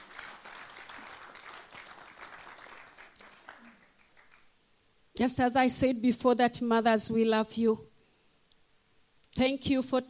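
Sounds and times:
audience clapping: 0:00.0 - 0:04.6
speech: 0:05.2 - 0:07.9, 0:09.4 - 0:10.0.

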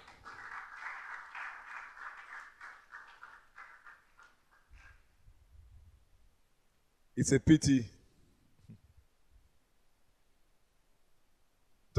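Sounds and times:
audience clapping hands: 0:00.0 - 0:05.0
speech: 0:07.2 - 0:07.9.

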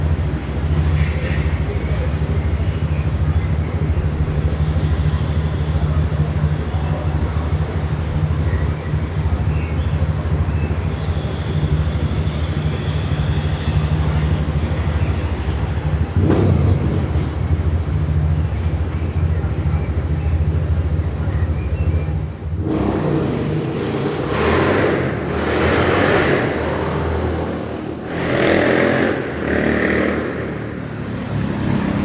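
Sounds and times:
idling traffic on Via Moscova in Milan in the evening: 0:00.0 - 0:32.0
louder vehicles passing in hissing waves: 0:00.0 - 0:32.0
faint voices: 0:00.2 - 0:22.6.

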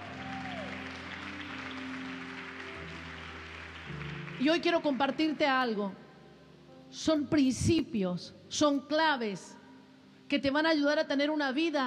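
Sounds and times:
audience applause: 0:00.0 - 0:05.2
speech: 0:04.4 - 0:06.0, 0:06.9 - 0:09.6, 0:10.3 - 0:11.8.

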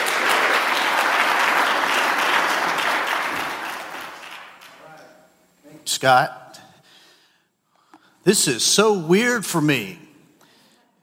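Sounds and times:
audience applause welcoming a speaker to the platform: 0:00.0 - 0:05.0
speech: 0:06.0 - 0:06.4, 0:08.2 - 0:10.0.

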